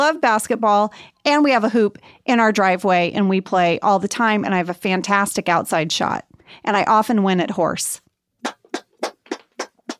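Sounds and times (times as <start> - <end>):
speech: 0.1 - 8.8
hand clapping: 8.4 - 9.9.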